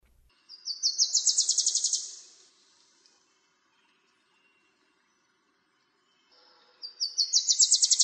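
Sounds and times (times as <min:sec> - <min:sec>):
bird trill: 0:00.5 - 0:02.3, 0:06.3 - 0:08.0.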